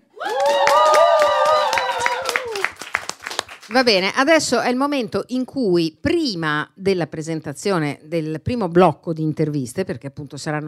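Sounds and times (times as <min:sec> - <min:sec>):
audience applause: 0:00.2 - 0:03.7
speech: 0:03.7 - 0:10.6.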